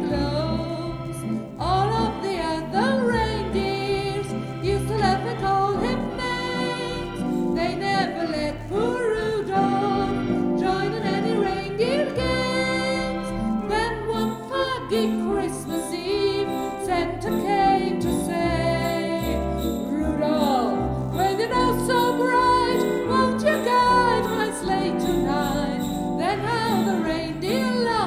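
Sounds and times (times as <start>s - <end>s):
organ: 0.0s - 28.0s
person singing: 0.0s - 28.0s.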